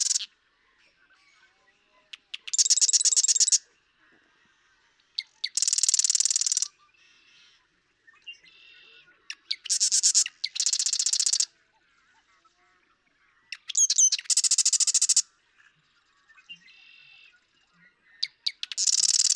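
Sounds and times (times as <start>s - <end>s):
Marsh Wren song: 0.0s - 0.3s, 2.2s - 3.6s, 5.2s - 6.7s, 9.3s - 11.5s, 13.6s - 15.2s, 18.2s - 19.3s.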